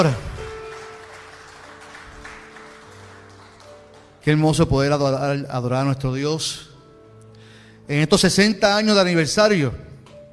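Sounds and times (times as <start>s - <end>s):
speech: 0.0s - 0.2s, 4.2s - 6.7s, 7.9s - 9.9s
audience applause: 0.4s - 4.2s.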